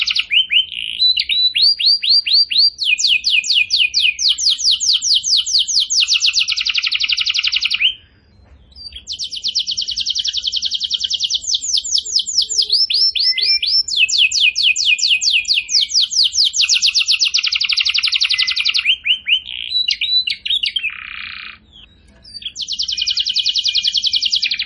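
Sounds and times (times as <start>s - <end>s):
bird song with trills: 0.0s - 24.6s.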